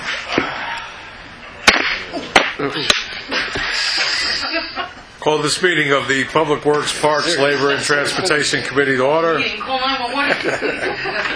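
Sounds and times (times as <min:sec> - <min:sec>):
heavy gavel striking to open a committee meeting: 0:01.6 - 0:03.1
laughter: 0:02.2 - 0:05.0, 0:10.2 - 0:11.3
speech: 0:02.6 - 0:11.3.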